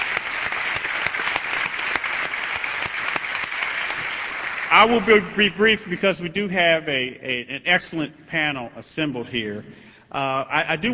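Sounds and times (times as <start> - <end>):
crowd applause: 0.0 - 5.8
speech: 4.7 - 10.9.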